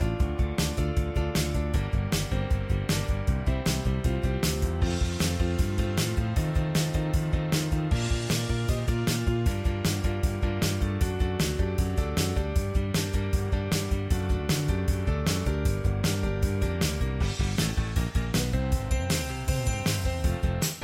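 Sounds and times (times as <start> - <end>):
instrumental music: 0.0 - 20.8.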